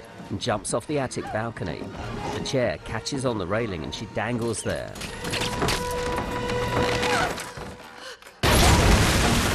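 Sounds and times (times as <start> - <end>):
speech: 0.3 - 5.5, 6.8 - 7.5
grenade explosion: 8.4 - 9.5.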